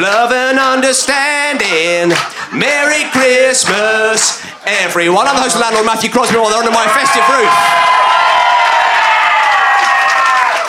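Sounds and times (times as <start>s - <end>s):
audience clapping: 0.0s - 4.5s, 5.2s - 6.7s, 7.8s - 10.6s
speech: 0.0s - 8.2s
audience cheering and shouting: 5.2s - 10.6s.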